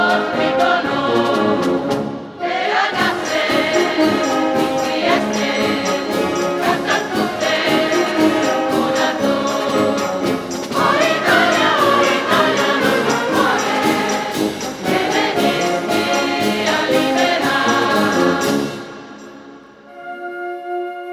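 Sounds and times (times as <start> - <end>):
philharmonic band playing: 0.0 - 20.8.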